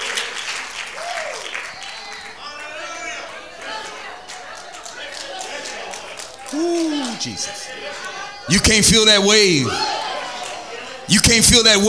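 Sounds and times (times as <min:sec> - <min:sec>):
audience clapping hands: 0:00.0 - 0:07.6
speech: 0:06.5 - 0:07.8, 0:08.5 - 0:10.0, 0:11.1 - 0:11.8.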